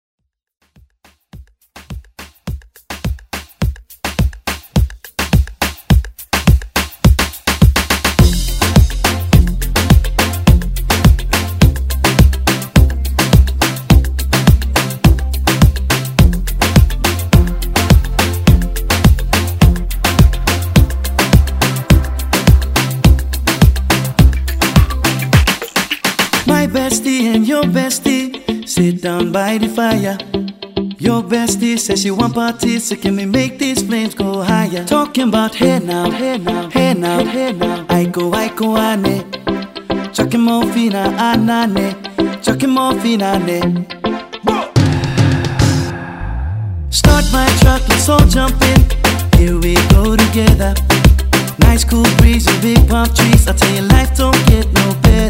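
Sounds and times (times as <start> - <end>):
moombahton music: 0.6 - 46.2, 46.9 - 55.2.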